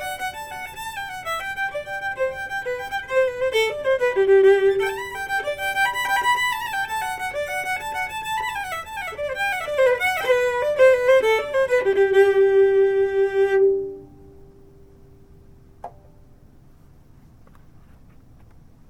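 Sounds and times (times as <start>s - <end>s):
fiddle playing jigs: 0.0s - 14.1s.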